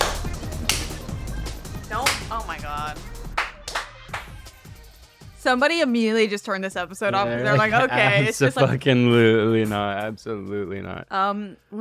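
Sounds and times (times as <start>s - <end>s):
hand claps: 0.0s - 2.4s, 3.3s - 4.6s
speech: 5.4s - 11.7s
people laughing: 7.2s - 9.1s.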